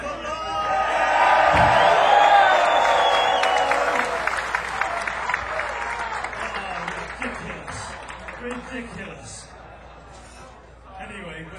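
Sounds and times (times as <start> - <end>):
whoops and shouts: 0.4 - 4.3
live audience applauding and cheering: 0.8 - 8.6.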